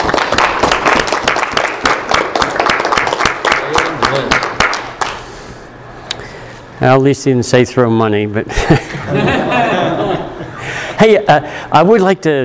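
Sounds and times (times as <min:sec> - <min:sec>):
round of applause: 0:00.0 - 0:05.2
speech: 0:06.8 - 0:10.3, 0:11.0 - 0:12.4
laughter: 0:08.5 - 0:11.5.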